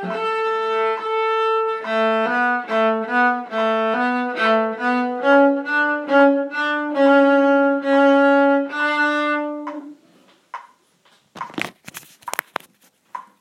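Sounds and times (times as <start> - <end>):
violin playing: 0.0 - 10.0.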